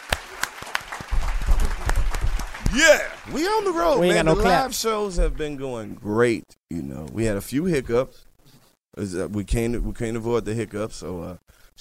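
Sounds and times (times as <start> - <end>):
applause: 0.0 - 4.7
speech: 2.7 - 8.3, 9.0 - 11.7.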